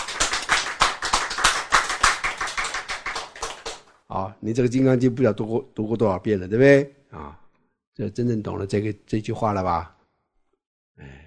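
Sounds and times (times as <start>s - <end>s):
hand clapping: 0.0s - 4.0s
speech: 4.1s - 7.4s, 8.0s - 10.0s, 11.0s - 11.2s.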